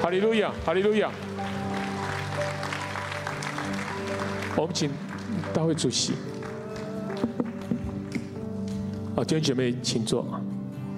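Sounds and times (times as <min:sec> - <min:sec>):
speech: 0:00.0 - 0:01.3, 0:04.6 - 0:06.4, 0:07.2 - 0:07.5, 0:09.2 - 0:10.5
audience applause: 0:00.0 - 0:08.2.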